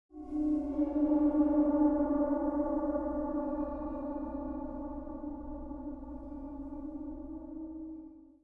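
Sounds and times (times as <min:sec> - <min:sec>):
music: 0:00.1 - 0:08.4.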